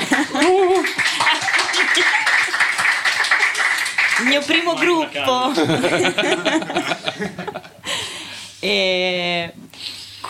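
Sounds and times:
laughter: 0:00.0 - 0:03.9, 0:05.3 - 0:08.2
applause: 0:00.0 - 0:05.2
speech: 0:00.4 - 0:01.0, 0:04.3 - 0:07.7, 0:08.6 - 0:09.5.

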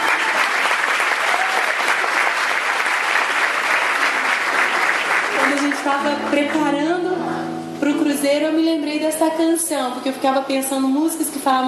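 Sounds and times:
audience applause: 0:00.0 - 0:06.2
speech: 0:05.8 - 0:11.6.

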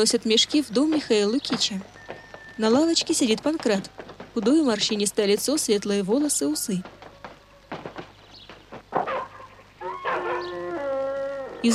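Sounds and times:
speech: 0:00.0 - 0:02.0, 0:02.6 - 0:07.0
dog whining: 0:09.0 - 0:11.7.

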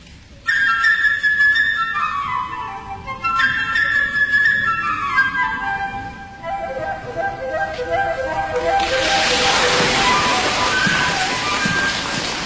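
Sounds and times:
flute playing birdlike swallow melody: 0:00.3 - 0:12.4
rushing noise: 0:06.7 - 0:12.4.

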